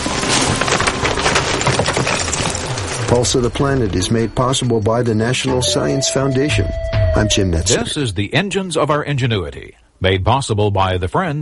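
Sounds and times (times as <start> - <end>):
ewes' hooves scrambling over rocks: 0.0 - 4.0
speech: 3.1 - 11.4.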